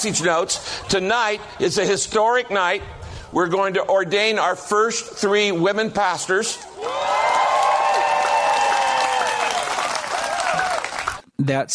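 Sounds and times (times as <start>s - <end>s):
speech: 0.0s - 7.2s, 11.4s - 11.7s
audience cheering and applauding: 6.6s - 11.2s.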